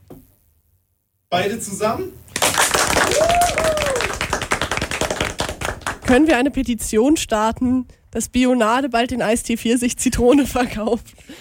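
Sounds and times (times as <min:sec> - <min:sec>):
speech: 0:01.3 - 0:04.0, 0:06.1 - 0:11.3
small team group applause: 0:02.3 - 0:06.2.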